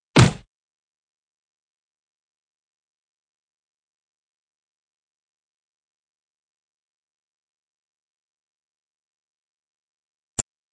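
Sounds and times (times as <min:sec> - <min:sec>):
fight sounds: 0:00.2 - 0:00.5.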